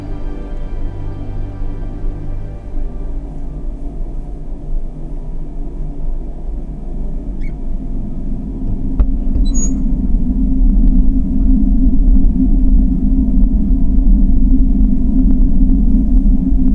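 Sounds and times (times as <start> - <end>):
rain: 0.0 - 4.4
deep bass hum of a heating system: 0.0 - 16.7
sea: 0.0 - 16.7
whistling wind: 0.0 - 16.7.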